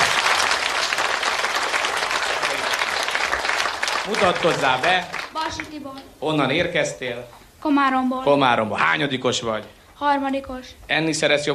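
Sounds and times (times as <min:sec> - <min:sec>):
audience applause: 0:00.0 - 0:05.8
speech: 0:04.1 - 0:11.5.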